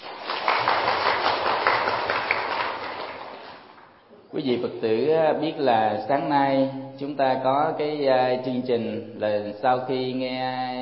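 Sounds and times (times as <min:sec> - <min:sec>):
audience applause: 0:00.0 - 0:03.8
speech: 0:04.3 - 0:10.8.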